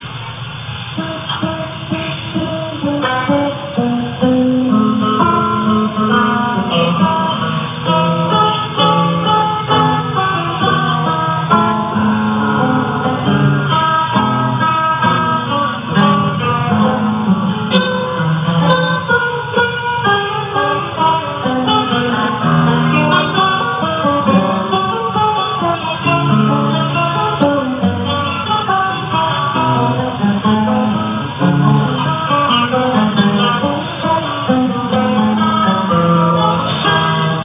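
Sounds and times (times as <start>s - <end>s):
guitar fugue: 0.0s - 37.4s.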